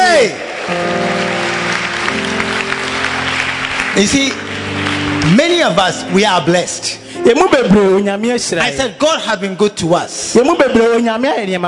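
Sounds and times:
audience clapping: 0.0s - 6.9s
speech: 4.0s - 11.6s.

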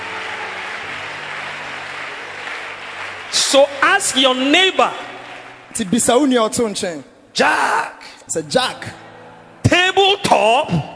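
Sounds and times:
audience clapping: 0.0s - 6.8s
speech: 3.3s - 5.1s, 5.8s - 9.0s, 10.0s - 10.9s.

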